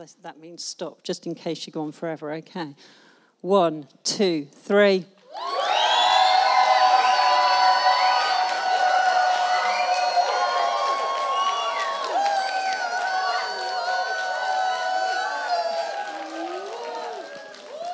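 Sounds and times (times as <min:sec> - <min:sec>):
speech: 0:00.0 - 0:05.5
children cheering: 0:05.3 - 0:17.9
scattered clapping: 0:07.0 - 0:17.9.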